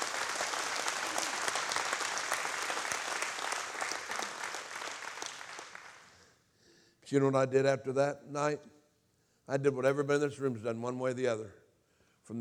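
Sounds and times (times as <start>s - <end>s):
audience applause: 0.0s - 6.2s
speech: 7.1s - 8.8s, 9.5s - 11.6s.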